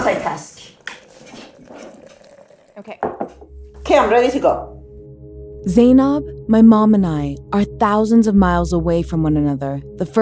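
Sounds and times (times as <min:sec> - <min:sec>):
speech: 0:00.2 - 0:00.8, 0:02.8 - 0:04.8, 0:05.6 - 0:10.2
coffee pouring: 0:00.7 - 0:03.8.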